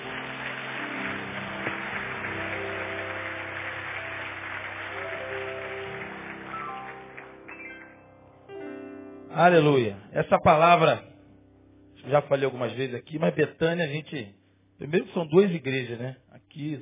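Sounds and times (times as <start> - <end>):
audience applauding loudly: 0.0 - 8.0
speech: 9.4 - 11.1, 12.0 - 16.8.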